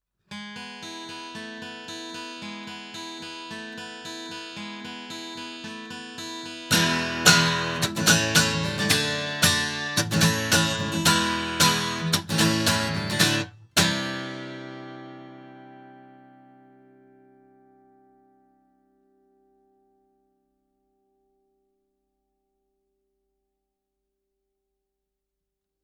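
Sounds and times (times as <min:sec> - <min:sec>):
guitar: 0:00.3 - 0:22.5.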